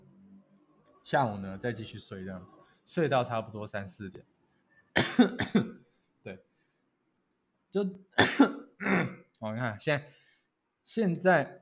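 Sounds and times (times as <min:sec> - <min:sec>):
speech: 0:01.0 - 0:04.4, 0:05.0 - 0:06.4, 0:07.7 - 0:10.2, 0:10.9 - 0:11.6
harsh raspy coughing: 0:05.0 - 0:05.8, 0:08.2 - 0:09.3.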